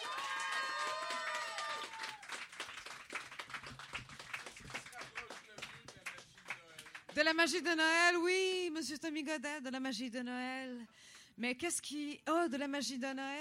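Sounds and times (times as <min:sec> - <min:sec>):
Christmas cabaret audience applause: 0:00.0 - 0:07.2
speech: 0:07.2 - 0:13.3.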